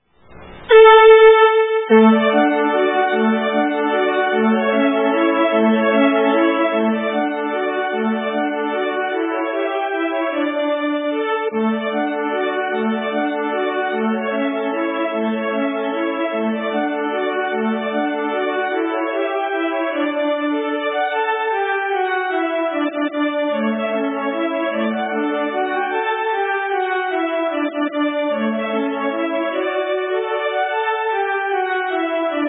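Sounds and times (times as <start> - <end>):
folk waltz: 0.7 - 32.4.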